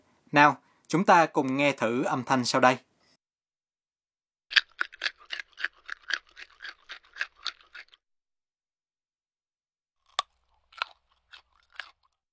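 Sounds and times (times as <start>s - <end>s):
speech: 0.3s - 2.9s
crisply fried bacon being bitten and chewed: 4.5s - 8.0s, 10.0s - 12.2s.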